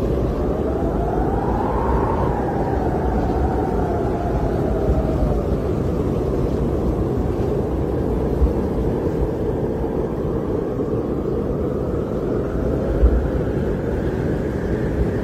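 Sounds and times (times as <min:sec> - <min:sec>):
polar wind roaring in Antarctica: 0:00.0 - 0:15.2.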